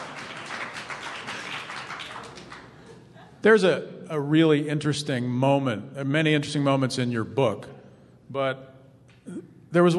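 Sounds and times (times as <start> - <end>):
lukewarm audience applause: 0.0 - 2.9
speech: 3.4 - 8.7, 9.3 - 9.9.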